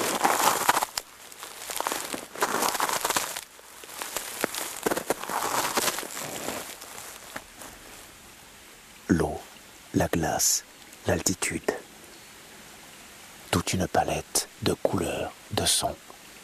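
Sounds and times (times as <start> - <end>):
footsteps crunching crusted snow over dead leaves: 0.0 - 8.2
speech: 10.0 - 11.8, 13.7 - 16.1.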